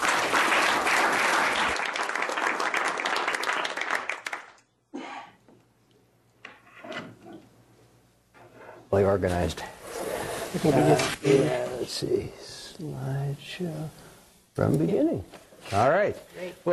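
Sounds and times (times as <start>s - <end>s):
audience applauding to welcome a speaker at a World TB Day talk: 0.0s - 4.6s
speech: 9.0s - 9.8s, 10.5s - 14.0s, 14.6s - 16.7s.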